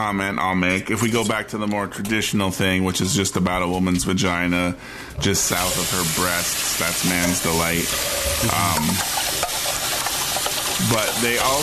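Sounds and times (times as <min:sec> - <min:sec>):
speech: 0:00.0 - 0:09.2, 0:10.8 - 0:11.6
pan being scrubbed out during cleanup: 0:07.0 - 0:11.6.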